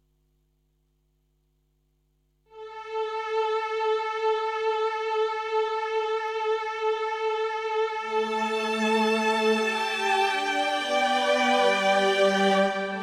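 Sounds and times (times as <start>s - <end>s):
classic stringer and pad patches on Korg 05R/W synthesizer: 2.8s - 13.0s.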